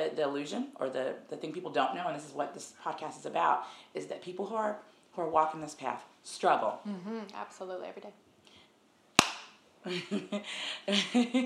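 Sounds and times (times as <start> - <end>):
speech: 0.1 - 8.2, 9.8 - 11.4
hand clap: 9.2 - 9.6.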